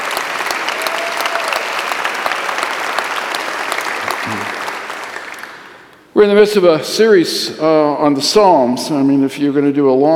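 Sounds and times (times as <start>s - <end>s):
large crowd applauding: 0.0s - 6.0s
speech: 6.2s - 10.1s.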